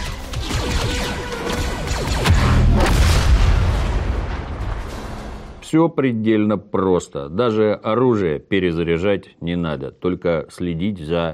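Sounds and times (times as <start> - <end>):
grenade explosion in a shooter video game: 0.3 - 5.6
debris-like impacts clattering: 2.9 - 5.6
speech: 5.7 - 11.3.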